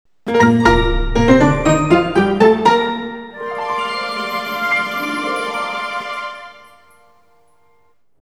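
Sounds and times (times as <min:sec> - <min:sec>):
story jingle: 0:00.3 - 0:07.8.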